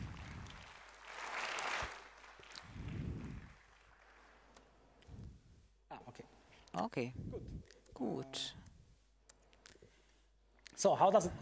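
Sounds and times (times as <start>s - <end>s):
audience applause: 0.0s - 4.6s
speech: 6.2s - 8.7s, 10.8s - 11.4s.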